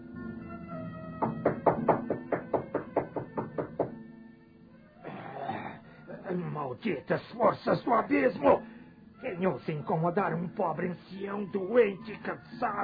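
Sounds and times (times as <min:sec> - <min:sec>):
knocking on a door: 0:01.2 - 0:04.0
speech: 0:06.7 - 0:12.8.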